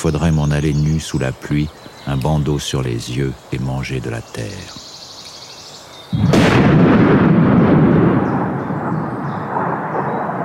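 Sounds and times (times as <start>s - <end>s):
speech: 0.0s - 4.9s
gunshot: 6.2s - 10.3s.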